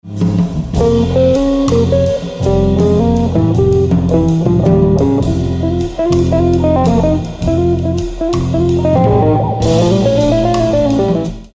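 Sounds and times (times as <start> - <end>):
jazz music: 0.2 - 11.5.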